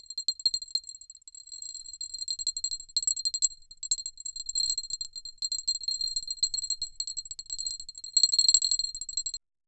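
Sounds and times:
crystals: 0.0 - 9.4.

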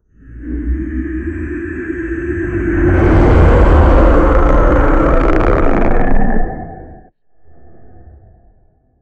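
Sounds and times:
monster emerging: 2.3 - 7.0.

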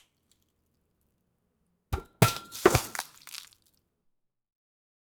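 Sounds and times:
crack: 2.0 - 3.7
splash: 2.4 - 3.6.

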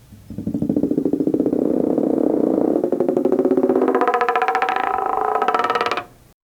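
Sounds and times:
balls rolling: 0.0 - 6.4.

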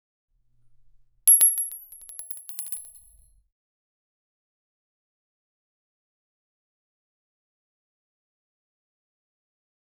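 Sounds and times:
ring falling from a height: 1.3 - 3.3.

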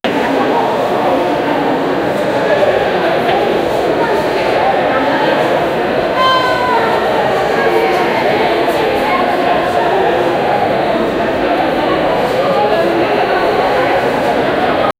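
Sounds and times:
crowd noise in a theater: 0.0 - 14.9.

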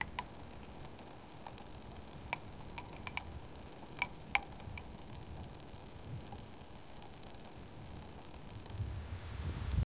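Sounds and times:
fine sand pouring: 0.0 - 9.9.

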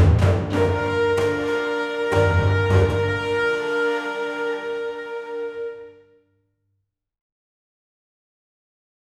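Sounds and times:
epic Indian orchestral music: 0.0 - 6.1.

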